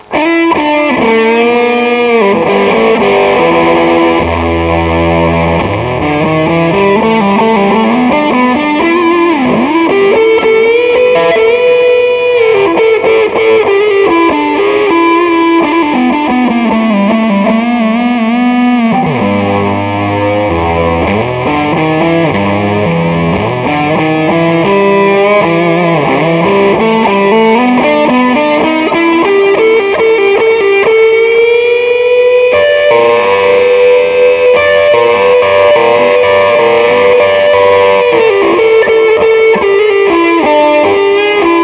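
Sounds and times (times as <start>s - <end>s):
guitar: 0.0s - 41.6s.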